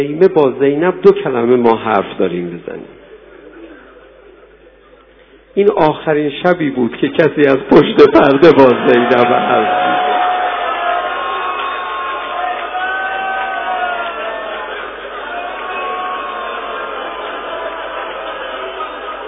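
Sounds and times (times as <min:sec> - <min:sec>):
speech: 0:00.0 - 0:03.0, 0:05.6 - 0:09.9
large crowd shouting: 0:08.4 - 0:19.2.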